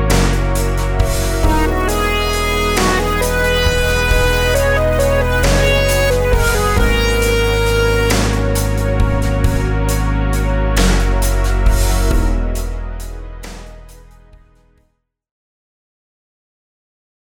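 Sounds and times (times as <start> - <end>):
compound meter rhythms in eighths with sixteenths: 0.0 - 13.1.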